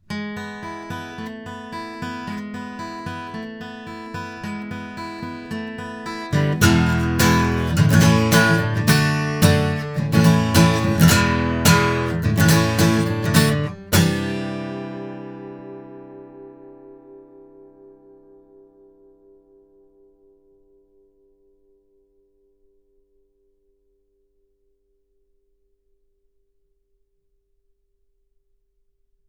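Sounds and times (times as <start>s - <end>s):
guitar: 0.0s - 22.3s.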